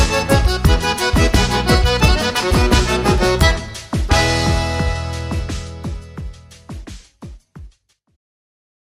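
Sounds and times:
batidão gaúcho music: 0:00.0 - 0:07.1.

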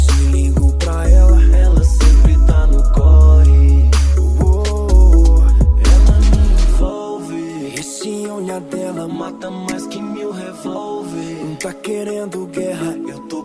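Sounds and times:
bass: 0:00.0 - 0:06.9.

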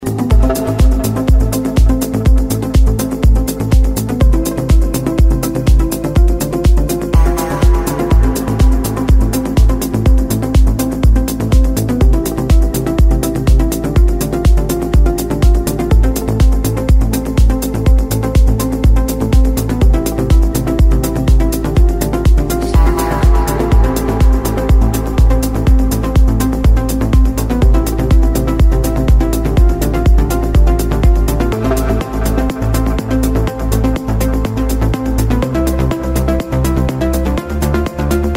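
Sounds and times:
progressive melodic house music: 0:00.0 - 0:38.3.

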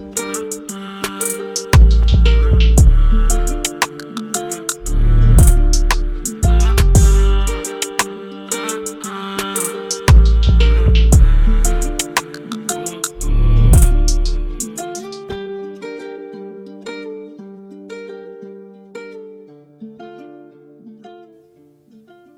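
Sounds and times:
trap beat: 0:00.0 - 0:15.4.

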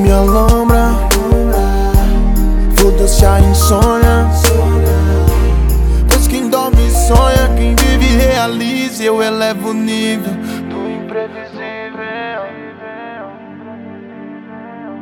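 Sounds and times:
bass house music: 0:00.0 - 0:08.5
rapping: 0:00.0 - 0:13.3.

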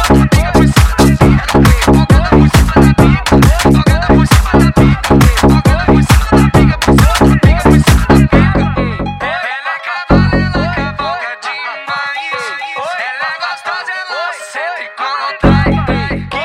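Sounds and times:
mega funk music: 0:00.0 - 0:11.3, 0:15.4 - 0:16.4.

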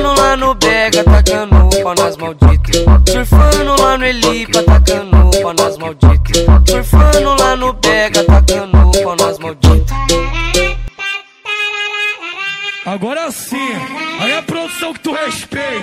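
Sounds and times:
deep house and pisadinha music: 0:00.0 - 0:10.8.

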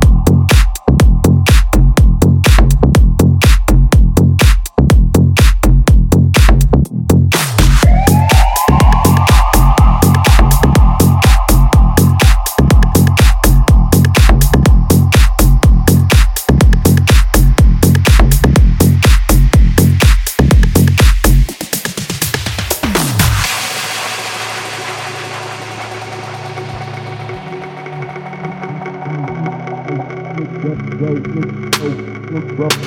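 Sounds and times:
bass house music: 0:00.0 - 0:32.8
rapping: 0:30.4 - 0:32.8.

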